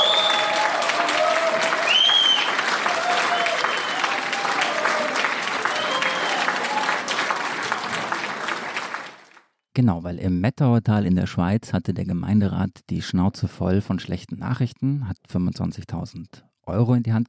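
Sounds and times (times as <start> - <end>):
recorded applause: 0.0 - 9.5
speech: 9.8 - 17.2.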